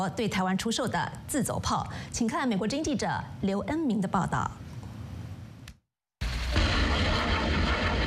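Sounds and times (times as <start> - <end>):
speech: 0.0 - 4.6
Thunderbolt-2000 multiple rocket launcher live-fire launch during a coastal exercise near Taichung: 6.2 - 8.0.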